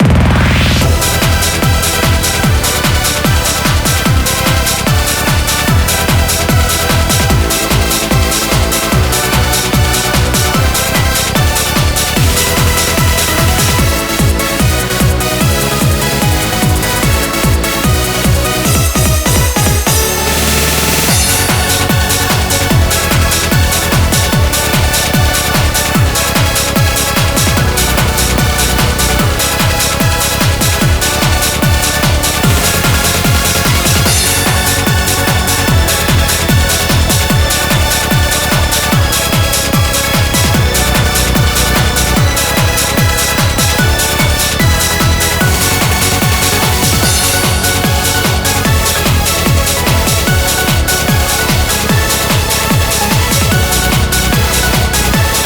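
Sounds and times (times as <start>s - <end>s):
instrumental music: 0.0s - 55.4s.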